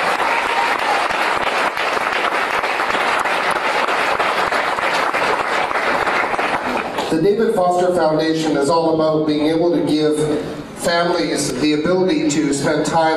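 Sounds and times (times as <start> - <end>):
audience applause: 0.0 - 7.1
speech: 7.2 - 13.1.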